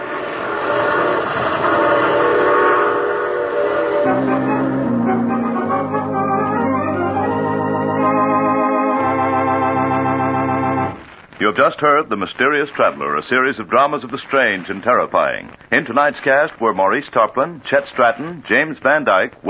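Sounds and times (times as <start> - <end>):
train arriving: 0.0 - 13.7
train horn: 1.7 - 6.1
speech: 11.6 - 19.4.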